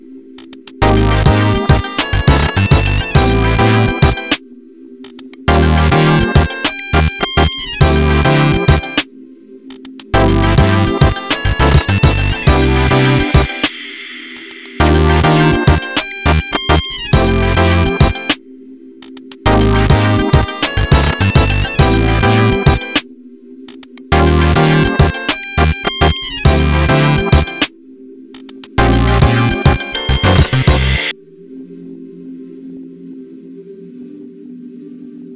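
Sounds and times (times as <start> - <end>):
off vocal instrumental music: 0.4 - 4.4, 5.0 - 9.1, 9.7 - 18.4, 19.0 - 23.1, 23.7 - 27.7, 28.4 - 31.1.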